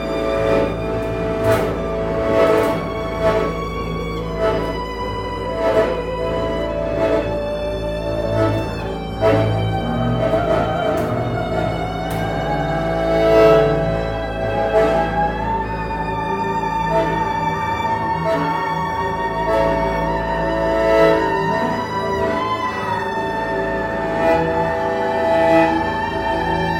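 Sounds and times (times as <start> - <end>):
string suite: 0.0 - 26.7.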